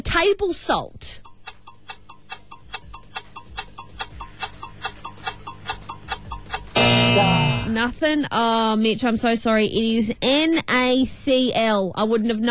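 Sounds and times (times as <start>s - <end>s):
speech: 0.1s - 1.3s, 7.2s - 12.4s
quiz countdown timer ticking: 1.1s - 7.8s.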